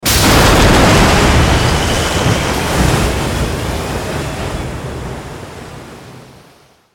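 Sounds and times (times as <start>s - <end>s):
enemy motorboat being destroyed: 0.0s - 5.1s.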